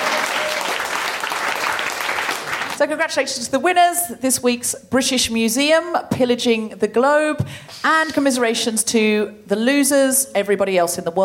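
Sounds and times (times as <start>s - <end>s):
audience applause: 0.0s - 2.8s
speech: 2.8s - 11.2s.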